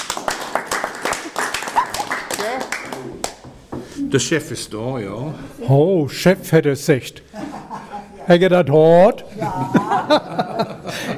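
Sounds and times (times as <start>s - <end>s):
audience applause: 0.0s - 3.4s
speech: 4.1s - 7.3s, 8.3s - 10.7s
laughter: 7.3s - 8.3s, 9.3s - 11.1s.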